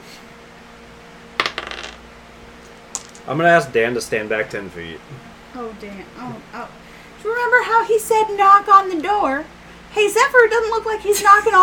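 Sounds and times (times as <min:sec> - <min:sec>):
six-sided die being rolled: 0:01.4 - 0:02.0, 0:02.9 - 0:03.3
speech: 0:03.2 - 0:11.6.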